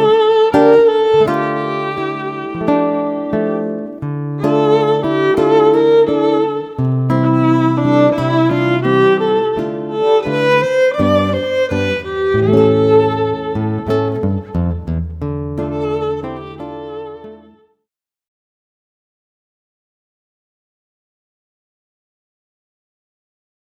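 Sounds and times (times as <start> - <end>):
guitar in a duo with violin: 0.0 - 17.7
violin in a duo with guitar: 0.0 - 17.7.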